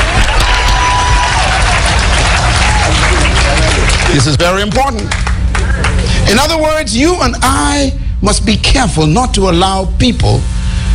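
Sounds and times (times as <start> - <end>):
audience clapping hands: 0.0 - 6.1
speech: 4.2 - 5.2, 6.3 - 10.6.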